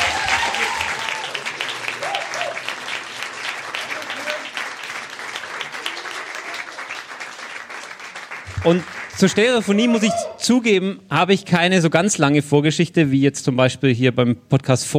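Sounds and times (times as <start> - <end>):
thunderous applause: 0.0 - 10.3
speech: 8.6 - 14.9.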